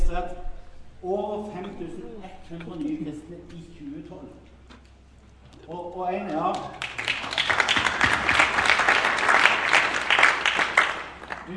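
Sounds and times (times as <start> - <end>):
speech: 1.0 - 4.5, 5.6 - 7.0
audience applause: 6.3 - 11.5.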